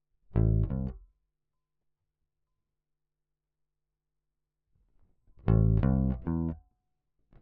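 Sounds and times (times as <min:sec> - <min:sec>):
bass: 0:00.3 - 0:01.1, 0:05.4 - 0:06.7.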